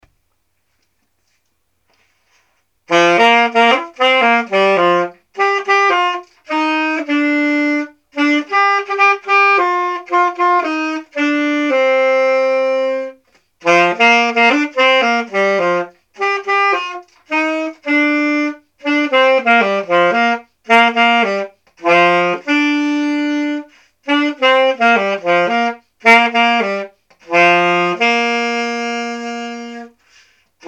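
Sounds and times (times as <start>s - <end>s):
saxophone playing at dinner with grandma: 2.3s - 30.6s.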